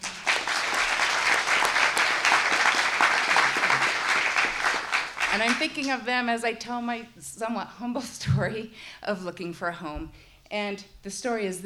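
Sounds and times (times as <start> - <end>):
audience applause: 0.0 - 5.9
speech: 5.4 - 11.6.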